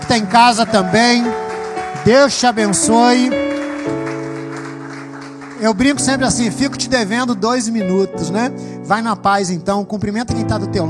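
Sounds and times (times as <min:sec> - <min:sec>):
audience applause: 0:00.0 - 0:06.6
speech: 0:00.1 - 0:01.4, 0:02.0 - 0:04.0, 0:05.6 - 0:10.8.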